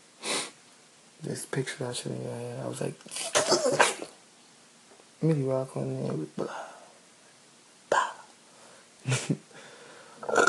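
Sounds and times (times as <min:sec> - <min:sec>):
speech: 0:01.2 - 0:04.0, 0:05.2 - 0:06.7
person burping: 0:03.1 - 0:04.1, 0:10.2 - 0:10.4.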